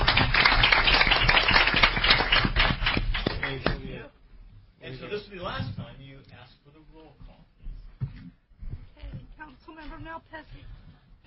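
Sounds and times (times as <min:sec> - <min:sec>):
round of applause in council chamber: 0:00.0 - 0:03.8
speech: 0:10.0 - 0:11.2.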